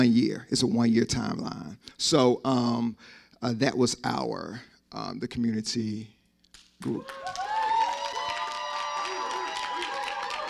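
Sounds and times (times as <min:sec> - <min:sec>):
speech: 0:00.0 - 0:06.2, 0:06.8 - 0:07.4
audience clapping: 0:06.5 - 0:10.4.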